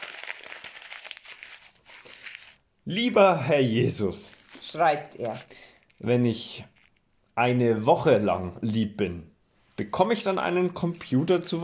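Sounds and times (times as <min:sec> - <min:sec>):
sheet of letter paper being crumpled: 0:00.0 - 0:02.6, 0:03.9 - 0:07.0
speech: 0:02.9 - 0:06.7, 0:07.4 - 0:11.6.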